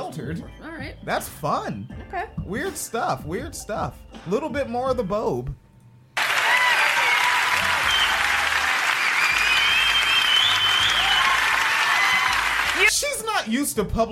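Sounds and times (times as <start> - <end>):
speech: 0.2 - 5.6, 13.4 - 14.1
audience applause during a speech: 6.2 - 12.9.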